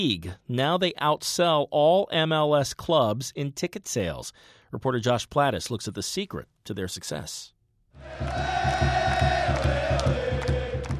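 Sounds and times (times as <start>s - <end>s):
speech: 0.0s - 9.8s
stadium crowd cheering at Qwest Field: 8.0s - 10.9s.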